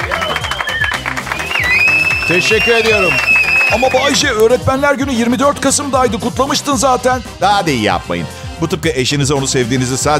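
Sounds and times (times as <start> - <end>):
applause for teachers: 0.0 - 4.6
speech: 2.3 - 10.1.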